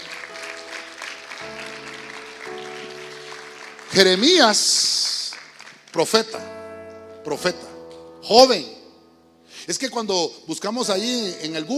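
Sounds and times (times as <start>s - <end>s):
audience applauding loudly: 0.0s - 6.2s
speech: 3.9s - 5.0s, 6.0s - 6.6s, 7.2s - 8.8s, 9.6s - 11.7s.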